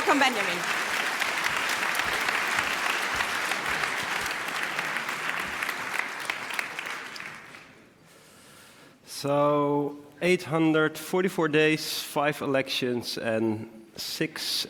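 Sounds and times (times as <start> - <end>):
audience applause: 0.0 - 7.8
speech: 0.1 - 0.8, 9.2 - 14.6.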